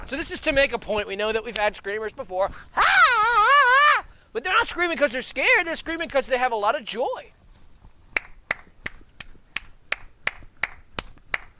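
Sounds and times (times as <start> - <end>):
speech: 0.1 - 2.9, 4.4 - 7.4
hands clapping: 8.1 - 11.5.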